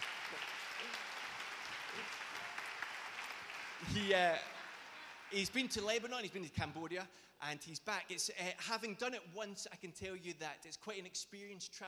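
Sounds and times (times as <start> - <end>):
audience applause: 0.0 - 5.8
speech: 2.0 - 2.2, 3.8 - 4.5, 5.3 - 11.8.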